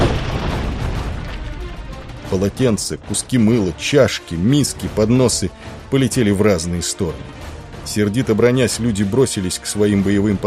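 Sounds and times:
muffled explosion shaking the hull of the Ulysses: 0.0s - 2.2s
speech: 2.3s - 10.4s.

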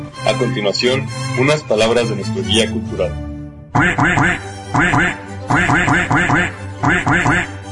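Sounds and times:
speech: 0.4s - 7.6s
voice imitating duck quacks: 3.8s - 7.6s.

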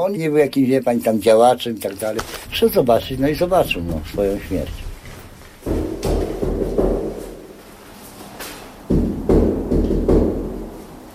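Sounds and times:
speech: 0.0s - 4.8s
knocking on a door with an agreed signal: 5.6s - 7.4s, 8.9s - 10.7s.

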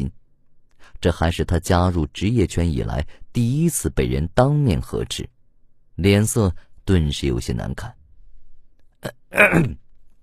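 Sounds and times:
speech: 0.9s - 5.3s, 6.0s - 8.0s, 9.0s - 9.8s
throat clearing: 9.0s - 9.8s.

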